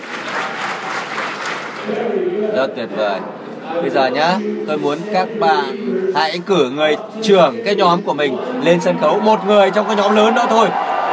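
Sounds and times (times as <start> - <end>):
crowd clapping in unison: 0.0 - 2.0
speech: 1.9 - 10.9.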